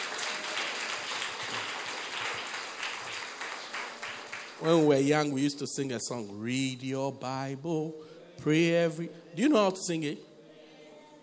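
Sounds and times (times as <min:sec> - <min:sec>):
audience clapping: 0:00.0 - 0:05.0
speech: 0:04.6 - 0:10.3.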